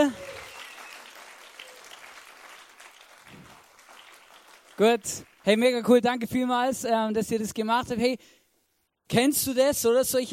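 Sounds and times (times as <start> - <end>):
audience applause: 0.0 - 5.6
speech: 4.8 - 8.4, 9.1 - 10.3.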